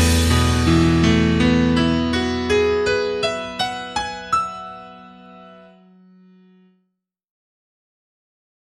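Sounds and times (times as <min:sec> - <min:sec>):
solo piano: 0:00.0 - 0:06.8.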